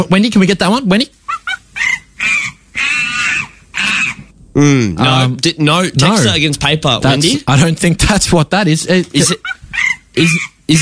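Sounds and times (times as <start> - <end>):
speech: 0.0 - 1.2, 4.6 - 10.8
monkey call from a soundboard: 1.3 - 4.3, 9.4 - 10.6.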